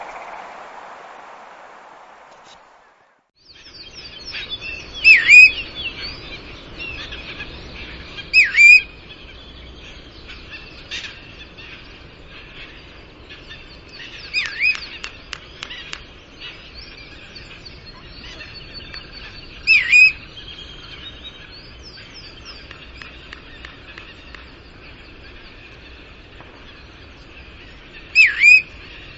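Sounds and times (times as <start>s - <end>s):
bristle-thighed curlew Numenius tahitiensis giving wavering whistled phrases: 0.0s - 11.1s, 13.4s - 24.5s, 28.0s - 29.1s.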